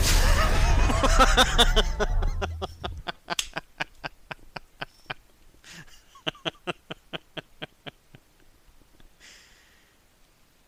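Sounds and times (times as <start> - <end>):
laughing: 0.2 - 8.2.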